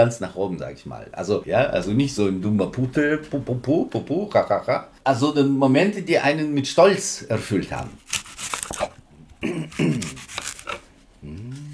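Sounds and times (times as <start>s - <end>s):
speech: 0.0s - 10.2s
knife cutting an apple: 7.7s - 9.0s, 9.6s - 10.9s.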